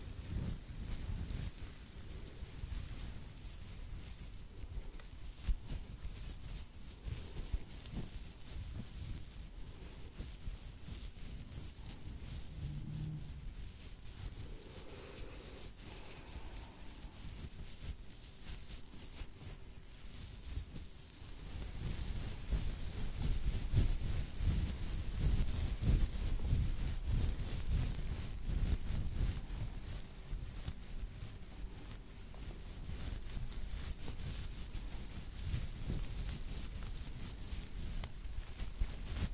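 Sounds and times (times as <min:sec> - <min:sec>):
fingers rubbing and scratching through hair in a scalp massage: 0:00.0 - 0:39.3
soft low thumps: 0:11.6 - 0:18.1.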